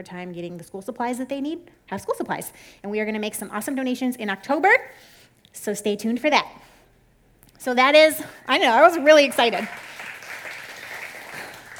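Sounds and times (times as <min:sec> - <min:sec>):
speech: 0:00.0 - 0:06.7, 0:07.6 - 0:09.9
audience clapping: 0:09.2 - 0:11.7.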